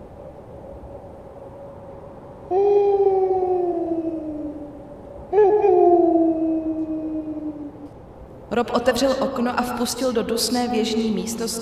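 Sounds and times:
long lonely melancholic howling: 0:02.0 - 0:08.2
speech: 0:08.6 - 0:11.6.

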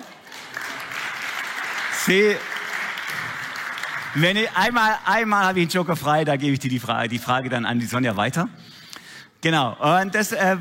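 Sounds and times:
audience applause: 0:00.0 - 0:04.7
speech: 0:02.0 - 0:02.5, 0:04.2 - 0:08.8, 0:09.4 - 0:10.5.

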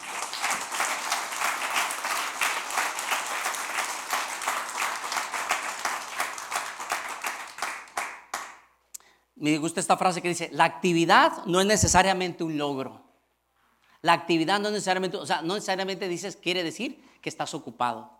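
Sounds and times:
audience applause: 0:00.0 - 0:08.6
speech: 0:09.4 - 0:13.0, 0:14.0 - 0:18.1.

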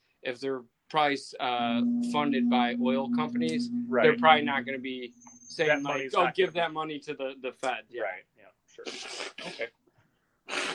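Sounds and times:
speech: 0:00.2 - 0:09.8
person blowing nose: 0:08.8 - 0:09.6, 0:10.5 - 0:10.7.

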